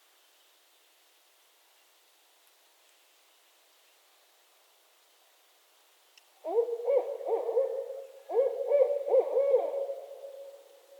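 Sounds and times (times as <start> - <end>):
barred owl hooting: 6.4 - 10.7.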